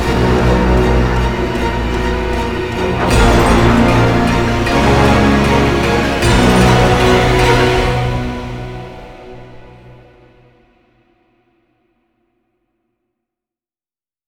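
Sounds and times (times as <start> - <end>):
gamelan: 0.0 - 10.0.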